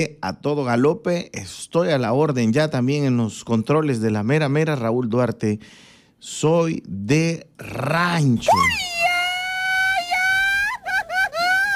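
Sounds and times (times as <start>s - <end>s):
speech: 0.0s - 8.9s
ranchero grito yell: 8.4s - 11.7s.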